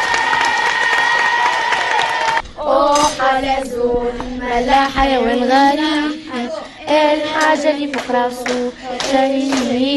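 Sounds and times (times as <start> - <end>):
audience ovation for pupils from a school in Tunis: 0.0 - 2.4
speech: 3.4 - 6.1, 6.9 - 9.9.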